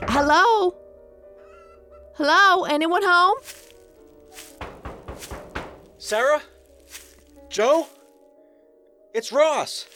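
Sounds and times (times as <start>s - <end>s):
speech: 0.2s - 0.8s, 2.2s - 3.6s, 6.0s - 6.5s, 7.5s - 8.0s, 9.2s - 9.9s
knocking on a door: 4.5s - 6.1s.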